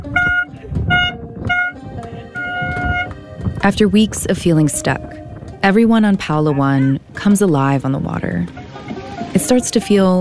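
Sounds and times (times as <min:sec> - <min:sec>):
loud boat horn: 0:00.0 - 0:03.2
low rumbling: 0:00.0 - 0:09.6
voices: 0:00.0 - 0:10.1
speech: 0:03.6 - 0:08.6, 0:09.5 - 0:10.1.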